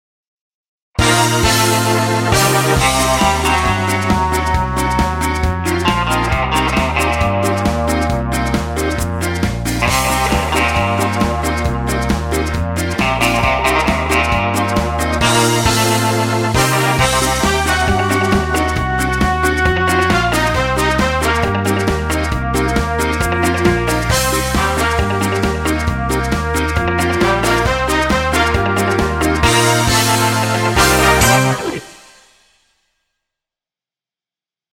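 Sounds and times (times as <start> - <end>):
British ska music: 1.0 - 32.6.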